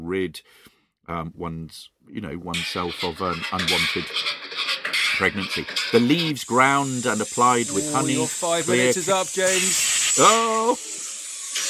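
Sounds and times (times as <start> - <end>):
speech: 0.1 - 10.9
1890s steam engine running: 5.8 - 11.6.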